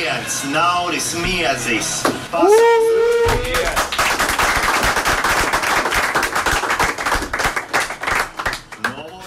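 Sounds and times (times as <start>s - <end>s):
speech: 0.2s - 3.9s
people applauding at a sports camp: 2.5s - 9.1s.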